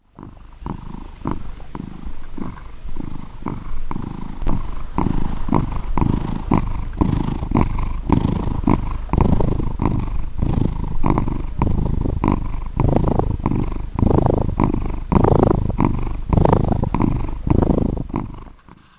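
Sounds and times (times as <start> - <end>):
cat Max purring: 0.0 - 18.9.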